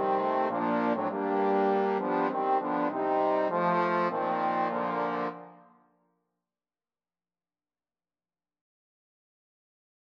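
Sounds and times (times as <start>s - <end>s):
trombone quartet: 0.0s - 5.5s.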